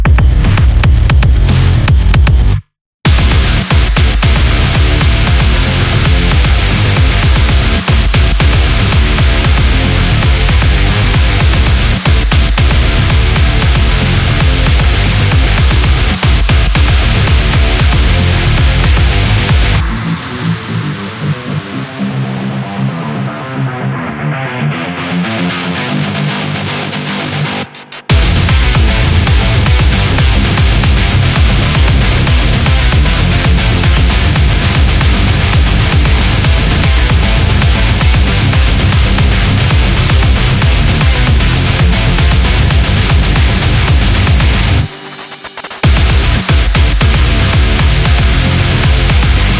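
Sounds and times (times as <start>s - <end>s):
aggressive sport metal music: 0.1s - 49.5s.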